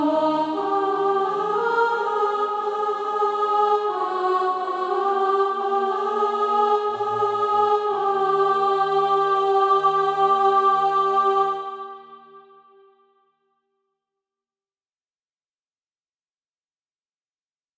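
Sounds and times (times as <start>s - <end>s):
alto voice singing practice music: 0.0s - 13.0s.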